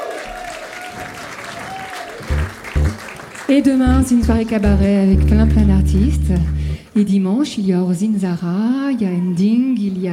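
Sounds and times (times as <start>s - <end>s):
audience applause: 0.0s - 3.5s
speech: 3.5s - 10.1s.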